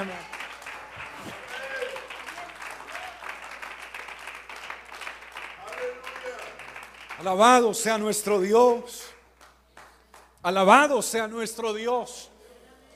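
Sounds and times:
audience applause: 0:00.0 - 0:07.4
speech: 0:07.2 - 0:09.1, 0:10.4 - 0:12.3.

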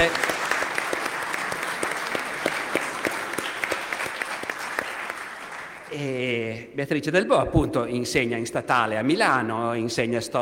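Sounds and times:
speech: 0:00.0 - 0:00.2, 0:06.8 - 0:10.4
audience applause: 0:00.0 - 0:06.0.

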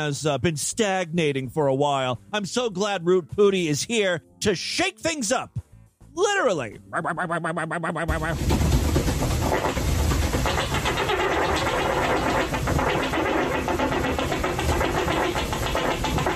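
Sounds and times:
speech: 0:00.0 - 0:05.6, 0:06.2 - 0:08.6
long rumbling fart: 0:07.9 - 0:16.3.

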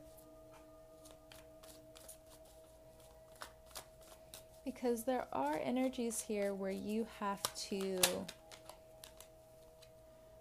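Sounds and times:
soft constant hum: 0:00.0 - 0:10.3
tarot cards shuffled during a reading: 0:01.0 - 0:09.9
speech: 0:04.7 - 0:08.4.

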